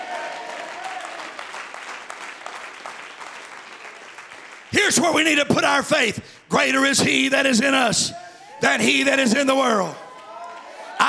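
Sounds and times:
audience clapping hands: 0.0 - 5.6
speech: 4.7 - 10.0.

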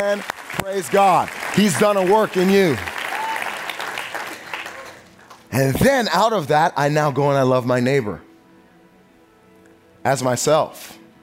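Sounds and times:
speech: 0.0 - 2.9, 5.5 - 8.3, 10.0 - 11.0
congregation clapping: 0.0 - 5.9.

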